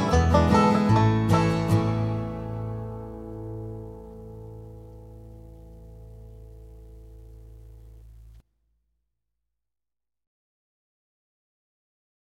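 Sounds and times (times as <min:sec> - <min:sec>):
banjo solos at 150 bpm: 0:00.0 - 0:08.2.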